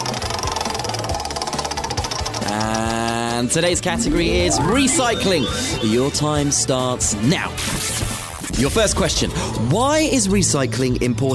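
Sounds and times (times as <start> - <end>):
game show prize wheel spinning: 0.8 - 6.8
speech: 3.4 - 8.0, 8.6 - 11.3.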